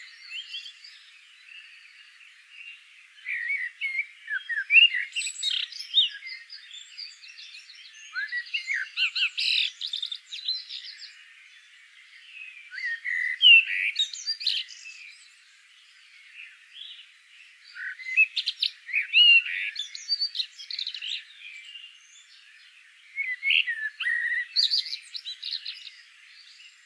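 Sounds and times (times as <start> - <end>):
common blackbird song: 0.0 - 26.8.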